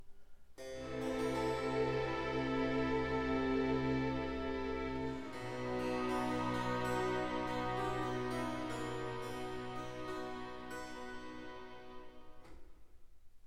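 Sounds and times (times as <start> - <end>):
baroque concerto adagio in G major: 0.6 - 12.8.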